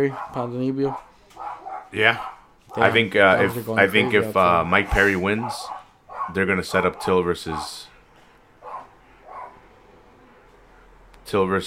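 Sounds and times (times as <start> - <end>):
speech: 0.0 - 1.1, 1.9 - 7.9, 11.3 - 11.6
dogs barking outside: 0.0 - 9.9.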